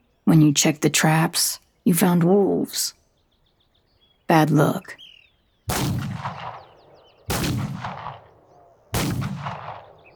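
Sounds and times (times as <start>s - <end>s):
speech: 0.3s - 3.0s, 4.3s - 5.0s, 5.7s - 6.4s
gunshots in the night: 5.7s - 10.1s.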